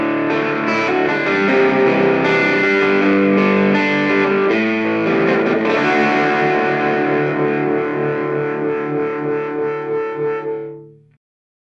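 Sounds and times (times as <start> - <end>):
guitar arpeggio on bridge single coil pickup: 0.0 - 11.2.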